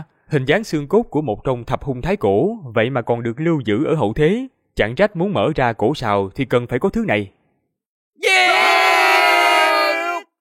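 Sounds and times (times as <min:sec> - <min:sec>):
speech: 0:00.0 - 0:07.4
crowd battle cry: 0:08.2 - 0:10.3.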